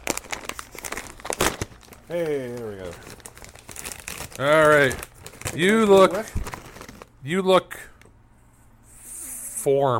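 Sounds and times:
side of a thick plastic snack bag torn open: 0.0 - 7.1
speech: 2.1 - 3.2, 4.4 - 6.5, 7.2 - 7.9, 9.6 - 9.9.

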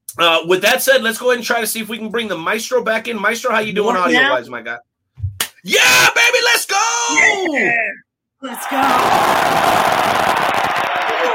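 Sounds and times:
speech: 0.2 - 4.9, 5.6 - 9.9
crowd cheering: 8.4 - 11.3
scattered claps: 9.1 - 11.3.

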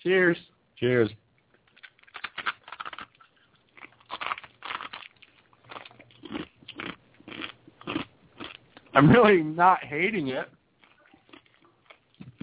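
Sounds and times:
speech: 0.0 - 1.2, 9.0 - 10.6
biting into crunchy chicken nuggets and chewing: 1.6 - 8.9, 10.8 - 12.4.

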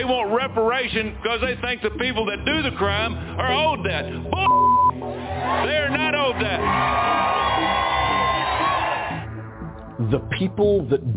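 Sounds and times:
speech: 0.3 - 4.8, 5.4 - 7.9, 10.0 - 11.1
crowd cheering at a political rally: 5.0 - 9.3.

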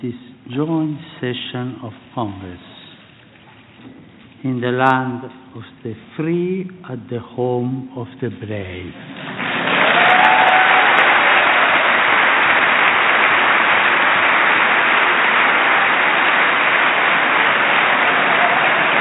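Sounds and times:
speech: 0.0 - 2.7, 3.8 - 9.4
large crowd applause after a speech: 9.1 - 19.0.

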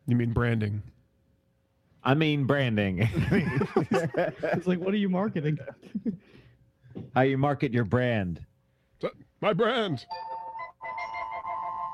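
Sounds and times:
speech: 0.1 - 1.0, 2.0 - 10.3
laughter: 3.0 - 6.3
phone ringtone: 10.1 - 11.9.

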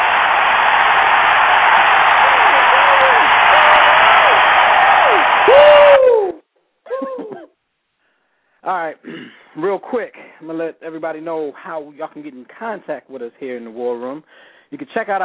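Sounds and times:
crowd cheering: 0.0 - 6.4
whoops: 0.0 - 7.3
speech: 9.6 - 15.2.

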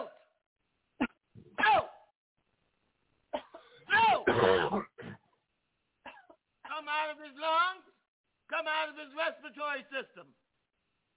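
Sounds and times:
coughing: 1.0 - 2.1, 3.3 - 5.4, 6.0 - 6.8
speech: 9.0 - 10.4.

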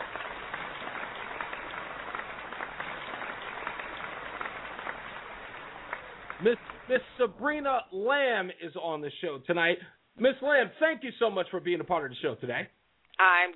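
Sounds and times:
audience applause: 0.0 - 7.6
speech: 6.4 - 13.5.

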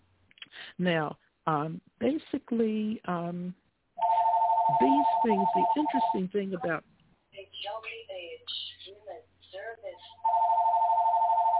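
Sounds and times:
speech: 0.8 - 3.6, 4.7 - 6.9
telephone ringing: 4.0 - 6.4, 10.1 - 11.5.

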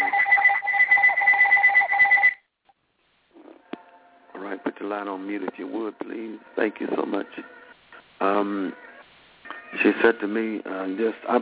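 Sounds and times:
phone ringing: 0.0 - 2.4
speech: 4.6 - 7.6, 8.2 - 8.9, 9.7 - 11.4.

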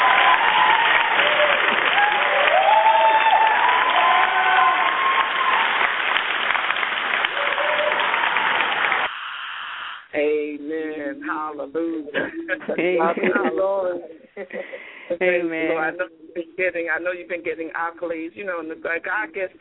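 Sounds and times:
applause: 0.0 - 9.1
speech: 11.6 - 19.5
laughter: 12.1 - 16.3.

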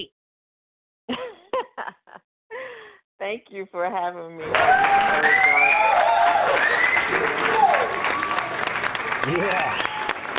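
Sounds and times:
speech: 3.2 - 8.0, 9.2 - 9.9
crowd applause: 4.4 - 10.3
whoops and shouted voices: 4.5 - 8.6.

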